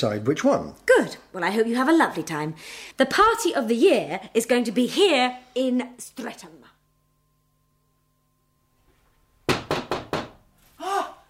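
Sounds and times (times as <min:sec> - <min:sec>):
speech: 0:00.0 - 0:06.6
knock at the door: 0:09.5 - 0:10.4.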